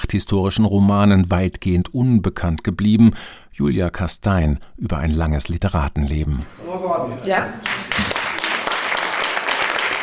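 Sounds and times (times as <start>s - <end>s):
speech: 0.1s - 8.3s
audience applause at a film premiere: 7.6s - 10.0s.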